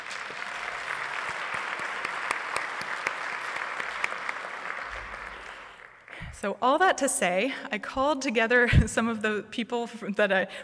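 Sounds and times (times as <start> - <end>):
audience applause: 0.0 - 6.3
speech: 6.4 - 10.6.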